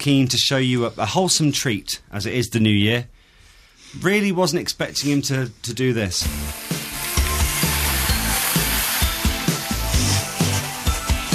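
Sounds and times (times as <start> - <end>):
speech: 0.0 - 3.2, 3.9 - 6.7
kale frying and sizzling in a pan: 6.2 - 11.3.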